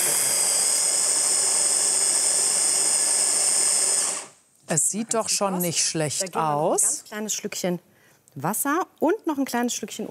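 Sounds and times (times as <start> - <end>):
blender mixing a sauce: 0.0 - 4.4
speech: 4.7 - 10.0.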